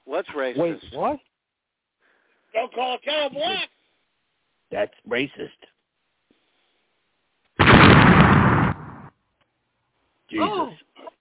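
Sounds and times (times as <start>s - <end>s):
speech: 0.1s - 1.3s, 2.5s - 3.7s, 4.7s - 5.7s, 10.3s - 10.8s
car bomb explosion: 7.6s - 9.1s.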